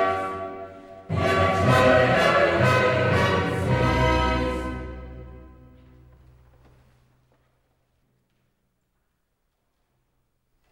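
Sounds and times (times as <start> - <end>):
choir singing a Sanctus in concert: 0.0 - 5.6.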